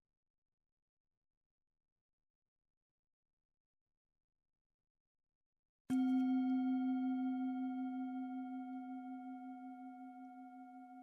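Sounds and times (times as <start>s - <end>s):
meditation bell ringing: 5.9s - 11.0s.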